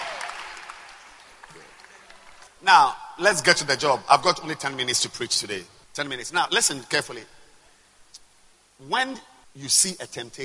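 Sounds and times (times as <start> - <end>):
audience clapping hands: 0.0 - 2.6
speech: 2.6 - 7.4, 8.8 - 10.4.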